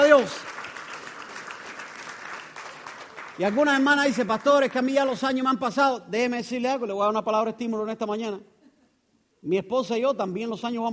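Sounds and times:
audience applause: 0:00.0 - 0:04.9
speech: 0:00.2 - 0:00.6, 0:03.4 - 0:08.5, 0:09.4 - 0:10.9.

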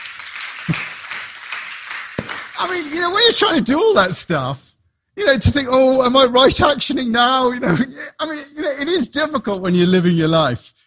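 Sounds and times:
audience applause: 0:00.0 - 0:02.9
speech: 0:02.6 - 0:10.8.

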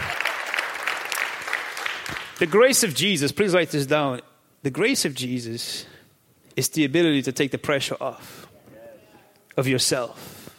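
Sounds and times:
audience applause: 0:00.0 - 0:02.6
speech: 0:02.4 - 0:06.0, 0:06.6 - 0:08.5, 0:09.6 - 0:10.4.

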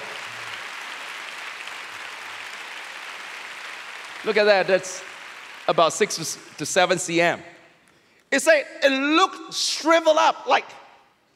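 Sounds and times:
audience applause: 0:00.0 - 0:06.4
speech: 0:04.2 - 0:05.1, 0:05.7 - 0:07.5, 0:08.3 - 0:10.8.

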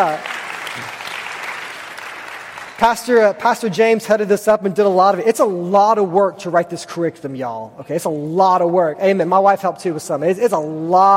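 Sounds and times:
speech: 0:00.0 - 0:01.0, 0:02.8 - 0:11.1
audience clapping: 0:00.0 - 0:03.6.

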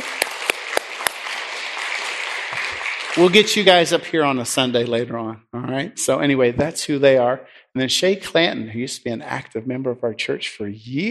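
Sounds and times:
audience applauding: 0:00.0 - 0:04.2
speech: 0:03.2 - 0:11.1.

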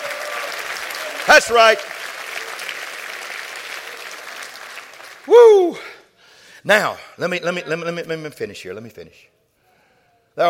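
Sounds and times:
audience clapping: 0:00.0 - 0:05.4
speech: 0:01.3 - 0:02.0, 0:05.3 - 0:05.9, 0:06.6 - 0:09.3.

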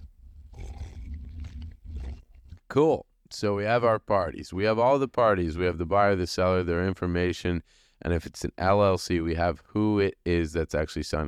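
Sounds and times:
person sipping coffee: 0:00.0 - 0:02.6
speech: 0:02.8 - 0:11.2.

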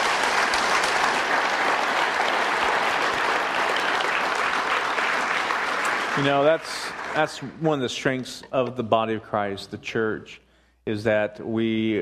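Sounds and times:
audience applause: 0:00.0 - 0:07.6
speech: 0:06.2 - 0:12.0.

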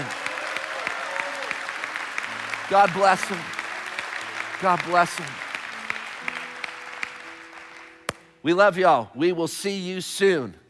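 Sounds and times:
crowd clapping: 0:00.0 - 0:08.3
speech: 0:02.7 - 0:03.6, 0:04.6 - 0:05.4, 0:08.4 - 0:10.6.

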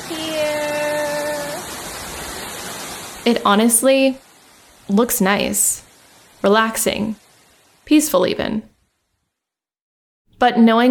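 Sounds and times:
waterfall rushing: 0:00.0 - 0:07.8
speech: 0:03.2 - 0:04.2, 0:04.9 - 0:07.2, 0:07.9 - 0:08.7, 0:10.4 - 0:10.9.

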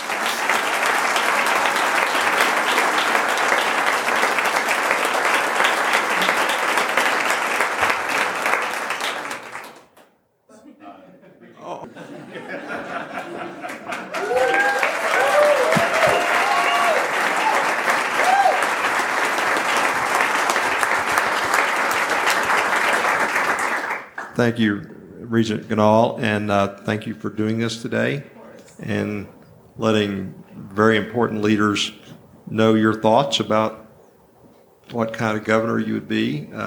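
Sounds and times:
audience applause welcoming a speaker: 0:00.0 - 0:10.1, 0:12.7 - 0:24.4
laughter: 0:10.5 - 0:14.6
speech: 0:24.4 - 0:33.8, 0:34.9 - 0:36.6.

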